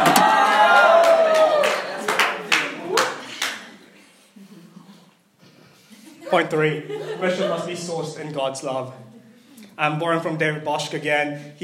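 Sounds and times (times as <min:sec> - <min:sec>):
audience clapping: 0:00.0 - 0:03.8
laughter: 0:05.7 - 0:08.2
speech: 0:06.3 - 0:09.1, 0:09.8 - 0:11.6.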